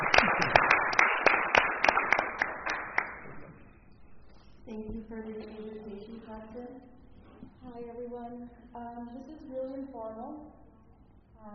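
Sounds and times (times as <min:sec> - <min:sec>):
audience applause: 0:00.0 - 0:03.4
speech: 0:06.4 - 0:07.0, 0:07.6 - 0:10.6, 0:11.4 - 0:11.5.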